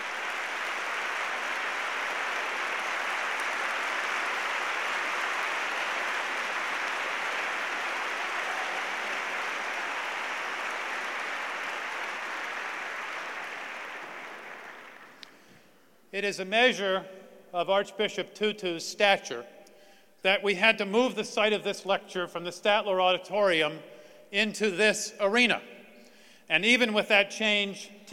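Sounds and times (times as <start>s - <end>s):
audience applause in arena: 0.0s - 15.4s
speech: 16.2s - 19.5s, 20.2s - 25.7s, 26.5s - 28.1s.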